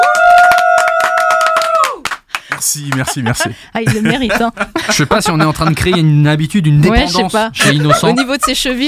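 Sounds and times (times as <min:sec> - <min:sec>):
studio hosts applauding: 0:00.0 - 0:03.4
laughter: 0:02.8 - 0:06.3, 0:06.9 - 0:08.8
speech: 0:02.8 - 0:08.8.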